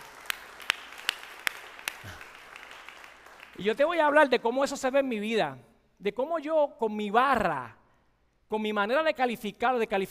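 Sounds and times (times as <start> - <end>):
audience applause: 0.0 - 3.8
speech: 3.6 - 7.8, 8.5 - 10.0.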